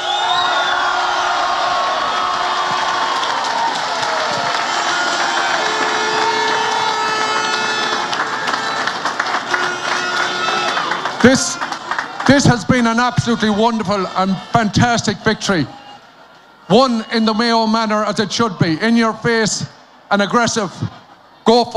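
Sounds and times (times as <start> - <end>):
applause: 0.0 - 14.2
people shouting: 0.0 - 16.0
crowd cheering: 0.0 - 21.7
speech: 11.2 - 11.7, 12.3 - 15.8, 16.7 - 21.7.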